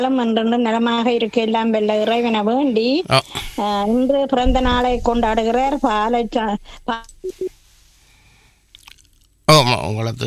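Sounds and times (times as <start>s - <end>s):
speech: 0.0s - 7.6s, 9.5s - 10.2s
faint telephone line noise: 3.3s - 7.5s
call waiting tone on a telephone line: 7.1s - 7.5s.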